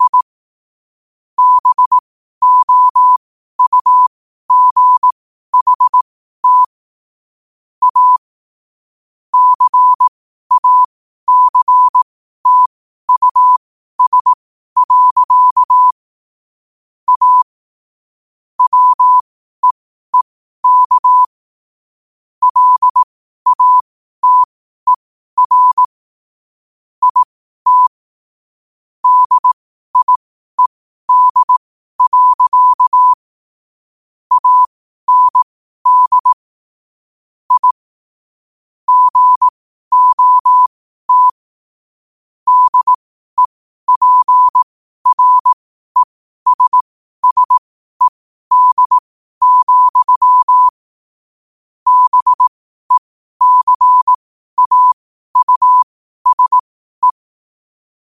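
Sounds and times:
morse code at 5 wpm: 0.0 - 0.3, 1.4 - 6.8, 7.8 - 8.2, 9.4 - 16.0, 17.1 - 17.5, 18.6 - 21.3, 22.4 - 26.0, 27.0 - 28.0, 29.0 - 33.3, 34.3 - 36.5, 37.5 - 37.8, 38.9 - 41.4, 42.5 - 50.8, 51.9 - 57.2.

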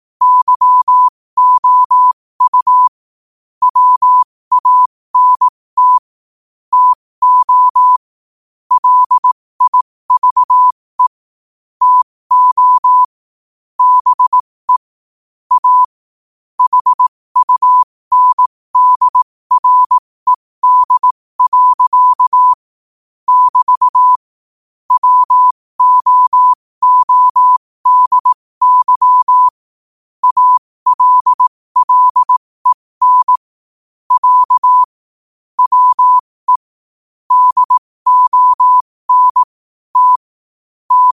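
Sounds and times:
morse code at 5 wpm: 0.2 - 2.9, 3.6 - 6.1, 6.7 - 8.0, 8.7 - 11.2, 11.8 - 13.1, 13.8 - 14.9, 15.5 - 15.9, 16.6 - 22.6, 23.3 - 24.3, 24.9 - 29.6, 30.2 - 33.5, 34.1 - 35.0, 35.6 - 36.7, 37.3 - 40.3, 40.9 - 41.1.

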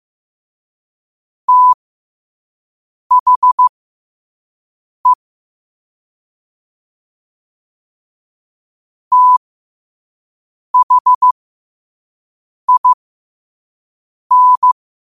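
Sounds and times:
morse code at 5 wpm: 1.5 - 1.8, 3.1 - 3.7, 9.1 - 9.4, 10.8 - 11.4, 12.7 - 13.0, 14.3 - 14.8.

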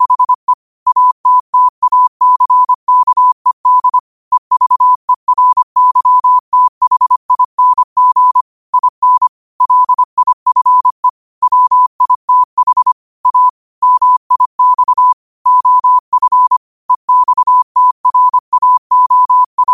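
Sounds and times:
morse code at 5 wpm: 0.0 - 19.7.

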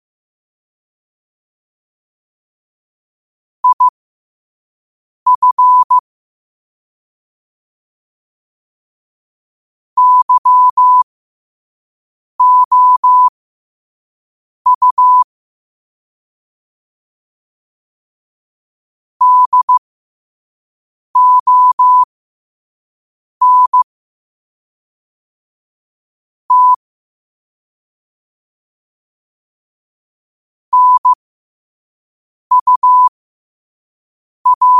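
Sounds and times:
morse code at 5 wpm: 3.6 - 3.9, 5.3 - 6.0, 10.0 - 11.0, 12.4 - 13.3, 14.7 - 15.3, 19.2 - 19.8, 21.2 - 22.1, 23.4 - 23.8, 26.5 - 26.8, 30.7 - 31.2, 32.5 - 33.1, 34.5 - 34.7.

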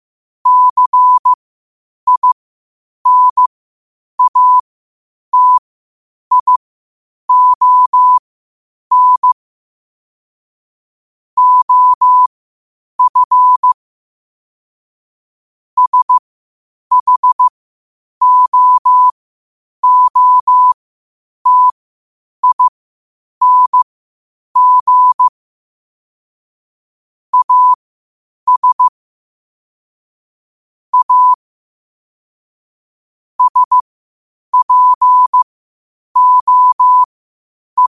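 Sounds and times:
morse code at 5 wpm: 0.5 - 1.4, 2.1 - 2.4, 3.1 - 3.5, 4.2 - 4.6, 5.4 - 5.6, 6.3 - 6.6, 7.3 - 8.2, 8.9 - 9.4, 11.4 - 12.3, 13.0 - 13.8, 15.8 - 16.2, 16.9 - 17.5, 18.2 - 19.1, 19.8 - 20.8, 21.4 - 21.8, 22.4 - 22.7, 23.4 - 23.9, 24.6 - 25.3, 27.3 - 27.8, 28.5 - 28.9, 30.9 - 31.4, 33.4 - 33.8, 34.5 - 35.5, 36.2 - 37.1, 37.8 - 37.9.

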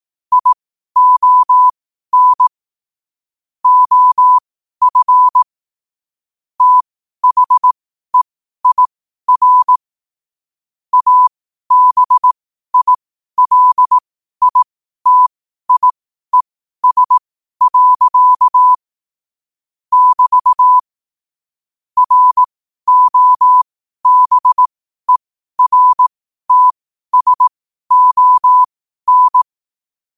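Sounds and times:
morse code at 5 wpm: 0.3 - 2.5, 3.6 - 5.5, 6.6 - 9.8, 10.9 - 18.8, 19.9 - 20.8, 22.0 - 29.5.

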